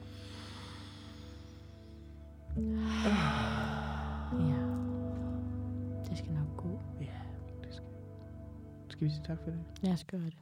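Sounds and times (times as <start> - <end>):
people taking a deep breath together: 0.0 - 5.6
low tonal hum: 0.0 - 9.7
speech: 2.6 - 3.2, 9.0 - 10.4.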